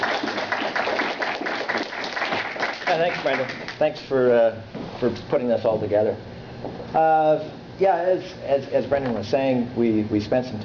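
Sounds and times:
audience applause thanking a guest speaker at a talk on Afghanistan: 0.0 - 3.8
speech: 2.9 - 10.6.

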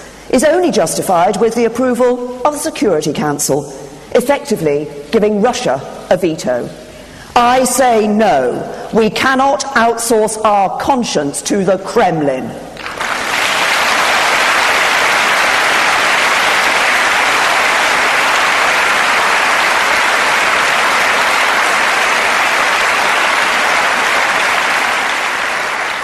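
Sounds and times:
speech: 0.3 - 13.1
long applause: 12.8 - 26.0.

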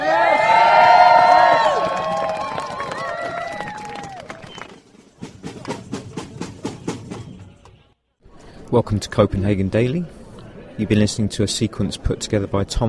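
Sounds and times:
crowd cheering at the Reclaim Power demonstration in Copenhagen: 0.0 - 4.7
speech: 8.7 - 10.2, 10.8 - 12.8.

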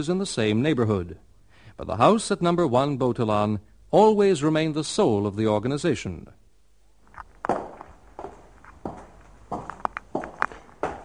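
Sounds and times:
speech: 0.0 - 6.4
footsteps going down stairs into a house cellar: 7.1 - 11.0.

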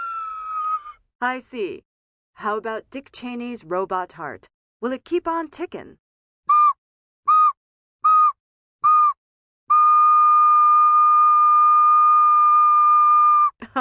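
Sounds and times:
slide whistle: 0.0 - 1.0, 6.5 - 13.6
speech: 1.2 - 6.0.

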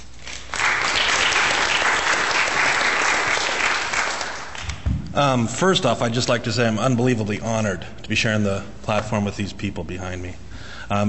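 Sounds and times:
audience applause welcoming a local attorney as a speaker: 0.3 - 4.7
speech: 5.2 - 11.0.

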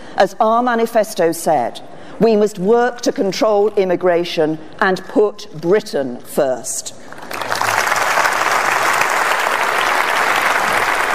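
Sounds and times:
speech: 0.2 - 7.0
audience applause: 7.2 - 11.1.

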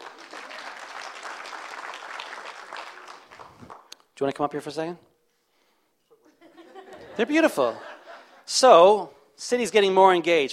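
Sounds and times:
crowd applauding: 0.0 - 4.0
speech: 4.2 - 5.1, 7.2 - 7.9, 8.5 - 10.5
laughter: 6.1 - 8.5.

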